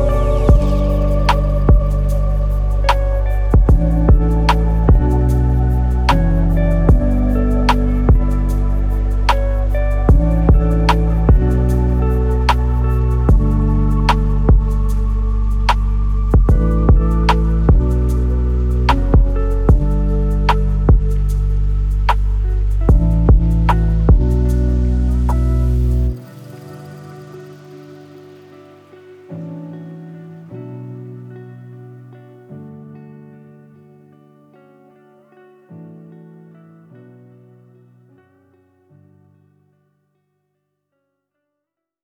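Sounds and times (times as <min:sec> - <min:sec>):
nature lo-fi music: 0:00.0 - 0:30.6.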